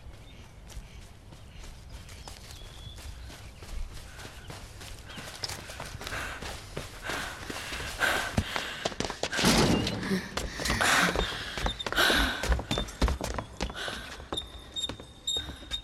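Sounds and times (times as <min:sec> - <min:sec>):
continuous rustle: 0:00.0 - 0:11.6
faint bird chirps: 0:00.0 - 0:15.8
young men running footsteps through a forest: 0:00.0 - 0:15.8.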